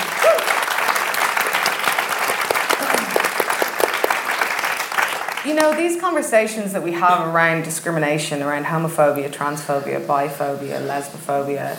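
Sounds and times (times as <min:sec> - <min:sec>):
audience applause: 0:00.0 - 0:05.9
speech: 0:05.5 - 0:11.7.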